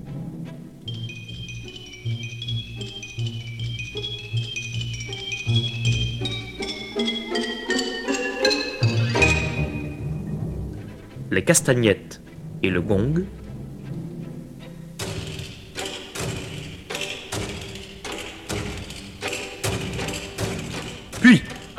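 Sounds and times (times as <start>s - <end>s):
xylophone: 0.9s - 10.4s, 15.0s - 21.7s
speech: 11.4s - 13.4s.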